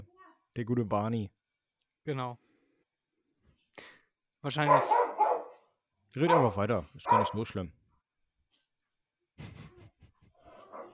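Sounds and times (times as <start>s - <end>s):
speech: 0.6s - 1.4s, 2.0s - 2.4s, 3.8s - 5.0s, 6.1s - 7.8s
dog barking: 4.7s - 5.6s, 6.3s - 7.4s, 10.6s - 10.9s.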